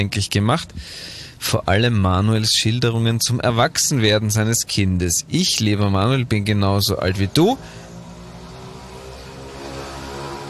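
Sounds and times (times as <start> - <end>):
speech: 0.0 - 7.9
mopeds driving past: 7.6 - 10.4.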